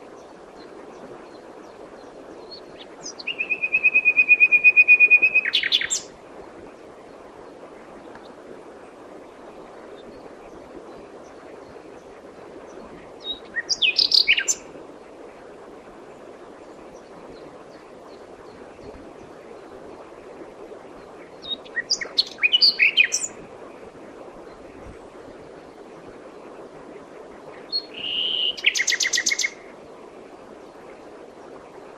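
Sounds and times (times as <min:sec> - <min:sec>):
common nightingale singing: 0:03.0 - 0:06.1, 0:13.2 - 0:14.6, 0:21.4 - 0:23.3, 0:27.7 - 0:29.6.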